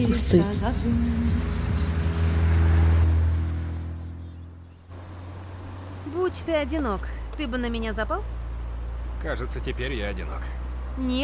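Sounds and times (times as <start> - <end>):
speech: 0.0 - 1.6, 6.3 - 8.4, 9.2 - 11.2
low engine drone of convertible car: 0.0 - 11.2
wind and road noise of convertible car on highway: 0.0 - 11.2.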